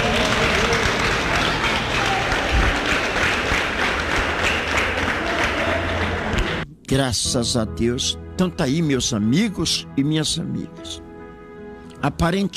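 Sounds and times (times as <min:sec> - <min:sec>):
applause: 0:00.0 - 0:06.6
speech: 0:06.9 - 0:11.0, 0:12.0 - 0:12.5.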